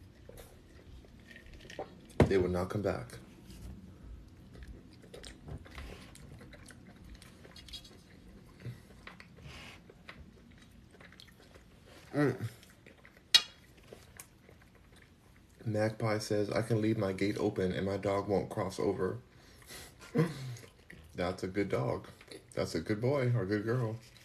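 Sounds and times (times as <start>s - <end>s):
chewing pasta: 0.0s - 2.2s, 3.1s - 16.0s, 19.3s - 23.1s, 23.8s - 24.2s
speech: 2.3s - 3.2s, 12.2s - 12.6s, 15.7s - 20.4s, 21.2s - 24.1s.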